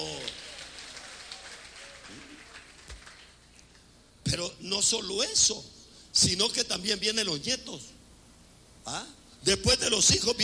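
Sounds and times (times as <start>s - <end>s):
applause: 0.0s - 3.5s
speech: 4.3s - 8.0s, 8.8s - 10.4s.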